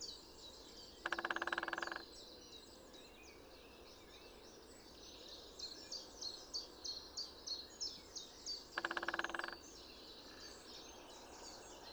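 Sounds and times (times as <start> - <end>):
great spotted woodpecker drumming: 1.1 - 2.0, 8.8 - 9.6.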